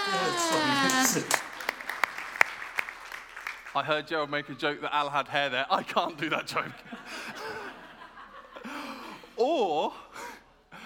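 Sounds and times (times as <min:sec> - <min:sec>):
speech: 0:00.1 - 0:01.5, 0:03.7 - 0:07.0, 0:09.4 - 0:10.0
hands clapping: 0:00.5 - 0:03.8
laughter: 0:05.8 - 0:09.3.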